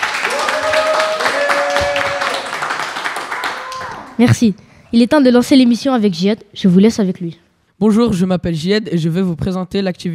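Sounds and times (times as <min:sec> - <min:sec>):
audience applauding: 0:00.0 - 0:04.2
speech: 0:04.2 - 0:10.1.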